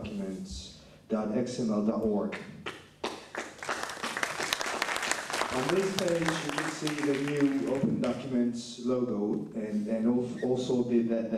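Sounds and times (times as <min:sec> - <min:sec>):
speech: 0:01.1 - 0:02.6, 0:05.6 - 0:11.3
audience applause at a presentation: 0:03.0 - 0:08.2.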